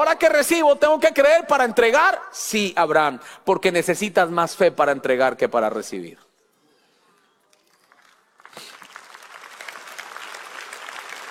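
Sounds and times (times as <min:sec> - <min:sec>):
speech: 0:00.0 - 0:06.2
audience applause: 0:07.6 - 0:11.2.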